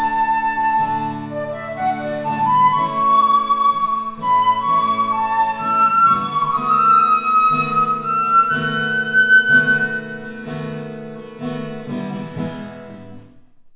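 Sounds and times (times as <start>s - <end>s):
flute: 0.0s - 10.8s.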